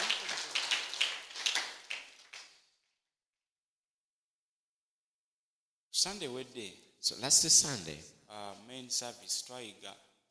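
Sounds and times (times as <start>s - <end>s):
audience clapping: 0.0s - 2.6s
speech: 6.0s - 10.1s.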